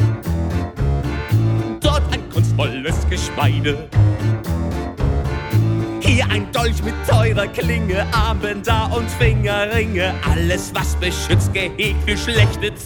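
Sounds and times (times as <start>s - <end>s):
song: 0.0s - 12.8s.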